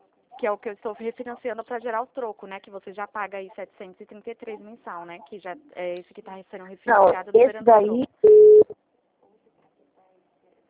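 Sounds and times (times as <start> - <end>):
speech: 0.4 - 8.2
telephone busy tone after a dropped call: 8.2 - 8.7.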